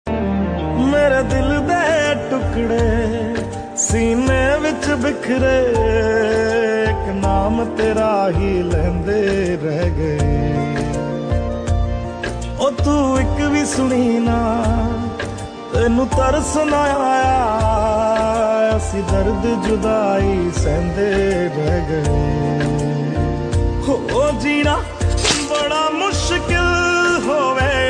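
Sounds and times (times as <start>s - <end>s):
song: 0.0s - 27.8s.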